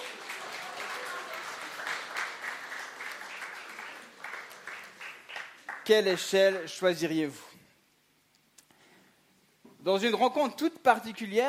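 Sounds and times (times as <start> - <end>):
audience applause: 0.0 - 6.3
speech: 5.9 - 7.5, 9.8 - 11.4.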